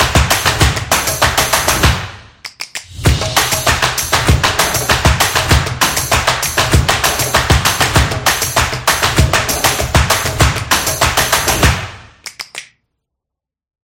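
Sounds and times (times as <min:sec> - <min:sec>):
drummer playing drums: 0:00.0 - 0:02.2, 0:02.9 - 0:11.8.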